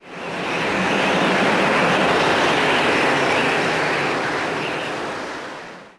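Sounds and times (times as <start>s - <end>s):
wind: 0.0s - 5.9s.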